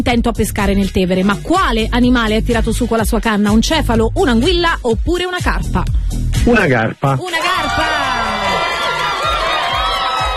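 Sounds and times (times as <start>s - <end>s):
speech: 0.1s - 8.0s
studio audience cheering and whooping: 7.3s - 10.3s.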